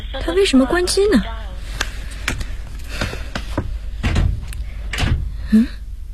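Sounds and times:
speech: 0.1 - 1.4, 5.5 - 5.8
unlocked door being pushed open: 3.0 - 5.5.

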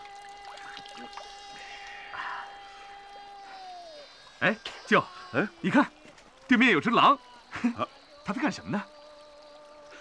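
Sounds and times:
water dripping: 0.0 - 2.0
steady faint hum: 0.0 - 9.9
speech: 4.4 - 8.9.

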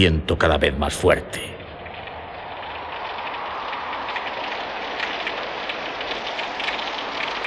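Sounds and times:
speech: 0.0 - 1.5
steady rain pouring onto a surface on a stormy night: 1.6 - 7.4.

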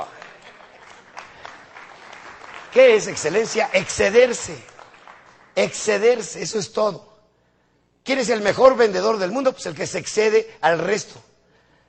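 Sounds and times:
audience applause: 0.0 - 5.9
speech: 2.8 - 4.7, 5.6 - 7.1, 8.0 - 11.3.

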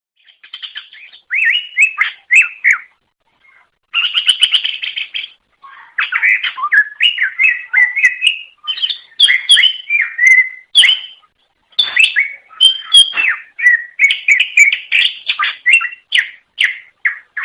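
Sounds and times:
leafbird chattering whistled song: 0.2 - 17.4.

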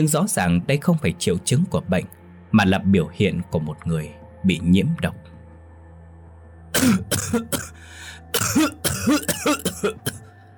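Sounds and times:
speech: 0.0 - 5.3, 6.8 - 10.2
woman coughing: 6.7 - 10.3.

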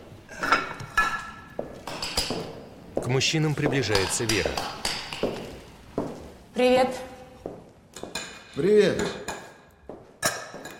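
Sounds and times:
dishes and cutlery clinking as tea is poured and porridge served: 0.3 - 2.6, 3.6 - 5.5, 8.0 - 10.7
speech: 3.1 - 5.4, 6.6 - 7.1, 8.6 - 9.2.

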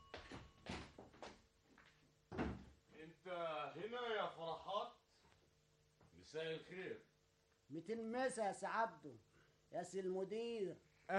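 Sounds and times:
door thump: 2.3 - 2.7
speech: 3.2 - 5.0, 6.2 - 7.1, 7.7 - 11.1.

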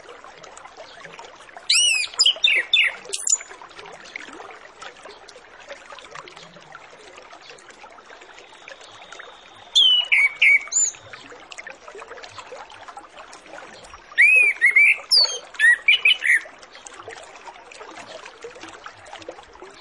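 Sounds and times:
Orange-headed Thrush singing: 1.7 - 3.5, 8.4 - 11.0, 14.2 - 16.4.

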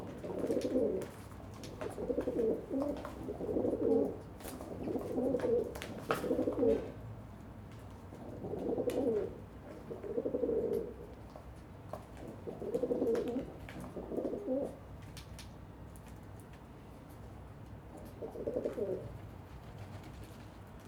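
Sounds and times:
pigeons cooing on a balcony: 0.0 - 7.0, 8.1 - 11.2, 12.2 - 14.8, 18.0 - 19.2.

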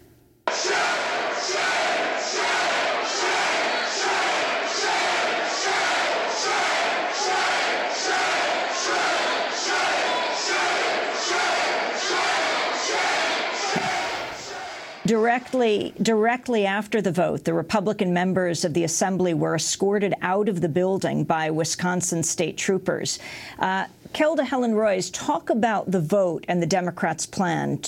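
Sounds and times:
crowd of demonstrators shouting in the Assembly: 0.5 - 15.1
speech: 15.4 - 27.8.

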